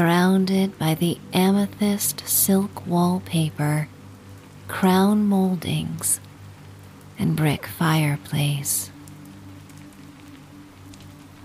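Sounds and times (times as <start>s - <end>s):
speech: 0.0s - 4.0s, 4.7s - 6.3s, 7.2s - 8.9s
low even hum: 0.0s - 11.4s
soft steady rain: 0.0s - 11.4s.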